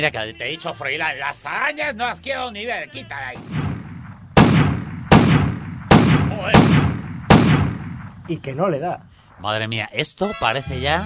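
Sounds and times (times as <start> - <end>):
speech: 0.0 - 3.6, 6.4 - 6.8, 8.3 - 11.0
shotgun firing birdshot: 3.4 - 8.3.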